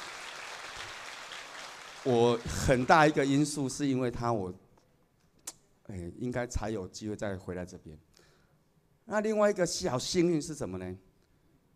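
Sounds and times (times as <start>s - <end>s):
audience applause: 0.0s - 3.2s
speech: 2.0s - 4.6s, 5.9s - 8.1s, 9.1s - 11.1s.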